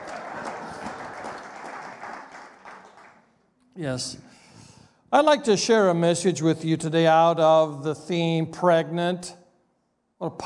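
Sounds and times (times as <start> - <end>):
crowd clapping: 0.0 - 3.4
speech: 3.8 - 4.4, 5.1 - 9.4, 10.2 - 10.4.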